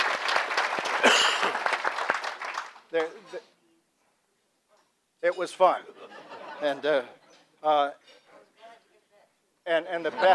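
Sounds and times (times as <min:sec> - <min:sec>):
audience applause: 0:00.0 - 0:03.1
speech: 0:02.9 - 0:03.6, 0:05.2 - 0:08.2, 0:09.6 - 0:10.3
laughter: 0:05.8 - 0:07.3, 0:10.0 - 0:10.3.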